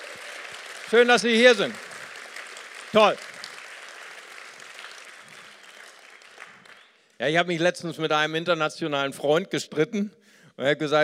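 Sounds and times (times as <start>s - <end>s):
audience applause: 0.0s - 7.2s
speech: 0.9s - 1.8s, 2.9s - 3.3s, 7.2s - 11.0s.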